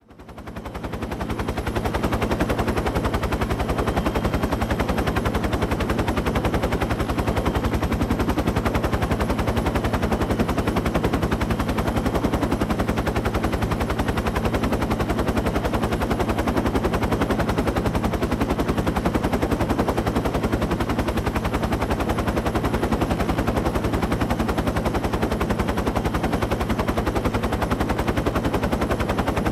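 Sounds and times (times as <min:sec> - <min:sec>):
UH-1 Huey helicopter in flight: 0:00.0 - 0:29.4.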